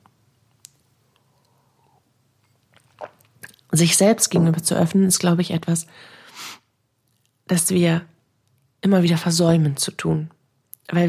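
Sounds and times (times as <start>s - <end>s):
person taking a sip of water: 1.1s - 3.7s
speech: 3.7s - 6.2s, 7.5s - 8.1s, 8.8s - 11.0s.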